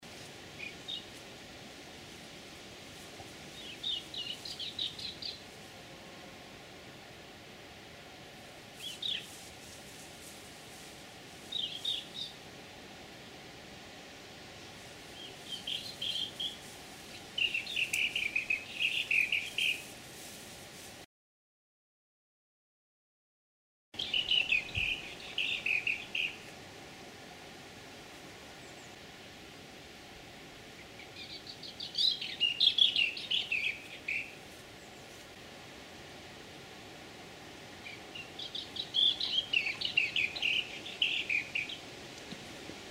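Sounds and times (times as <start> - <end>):
unknown bird sound: 3.5 - 5.5, 8.8 - 9.4, 11.5 - 12.4, 15.1 - 19.9, 24.0 - 26.5, 30.7 - 35.2, 37.8 - 42.4.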